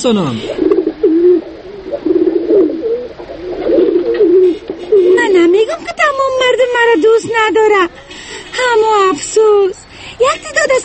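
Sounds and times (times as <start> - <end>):
speech: 0.0 - 0.5, 5.7 - 8.0, 8.6 - 10.8
white pigeon cooing: 0.4 - 5.9.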